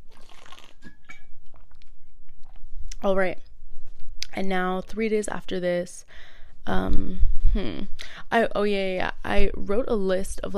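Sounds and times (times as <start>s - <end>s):
sipping water: 0.0s - 1.9s
speech: 3.0s - 3.5s, 4.4s - 10.5s.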